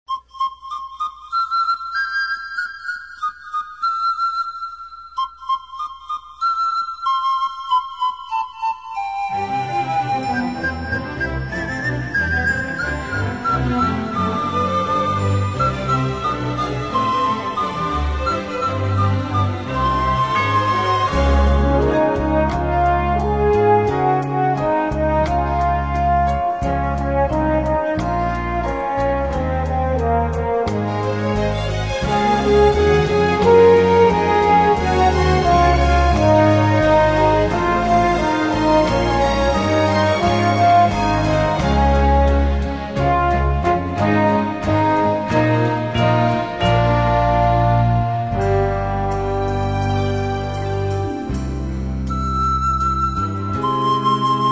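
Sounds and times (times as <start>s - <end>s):
orchestral panpipes: 0.1s - 54.5s.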